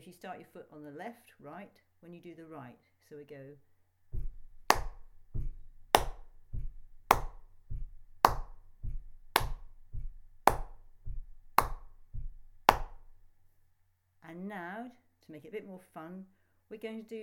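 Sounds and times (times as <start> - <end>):
speech: 0.1 - 3.7, 14.3 - 17.2
rhythmic hand clapping on beats: 4.2 - 13.2.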